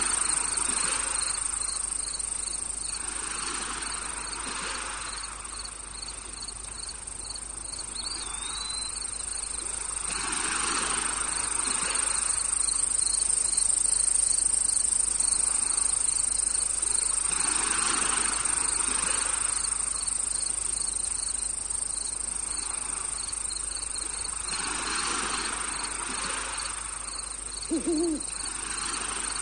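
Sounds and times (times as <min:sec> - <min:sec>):
tropical beach ambience at sunset: 0:00.0 - 0:29.4.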